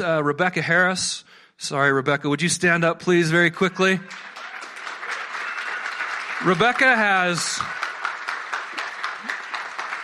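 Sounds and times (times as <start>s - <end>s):
speech: 0.0s - 4.3s, 6.4s - 7.8s
audience applause: 3.8s - 10.0s.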